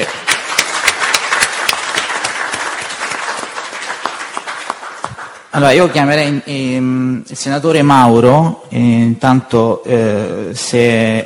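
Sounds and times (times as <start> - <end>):
audience applause: 0.0 - 5.5
speech: 5.6 - 11.2.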